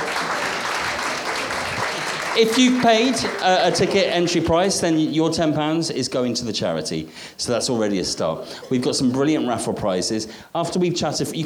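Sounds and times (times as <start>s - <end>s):
audience clapping: 0.0s - 4.7s
speech: 2.4s - 11.4s.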